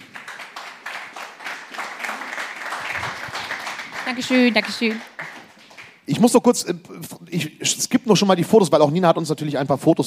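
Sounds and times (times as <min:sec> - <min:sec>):
audience applause: 0:00.0 - 0:06.0
speech: 0:04.1 - 0:05.1, 0:06.2 - 0:10.0.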